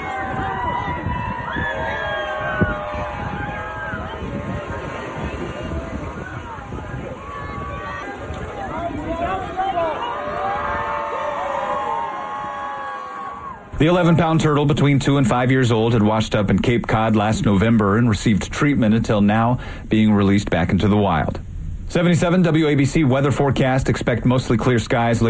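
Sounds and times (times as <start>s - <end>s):
kids and onlookers cheering at turtle release: 0.0s - 13.8s
speech: 13.8s - 25.2s.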